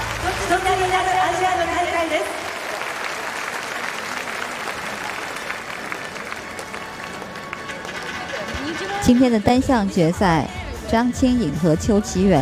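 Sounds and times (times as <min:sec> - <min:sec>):
arena audience applause: 0:00.0 - 0:09.0
speech: 0:09.1 - 0:12.4.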